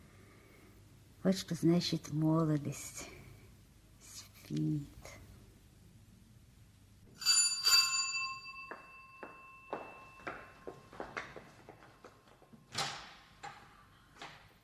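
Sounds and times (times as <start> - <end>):
speech: 1.2 - 3.2, 4.5 - 5.0
doorbell ringing: 7.1 - 11.4.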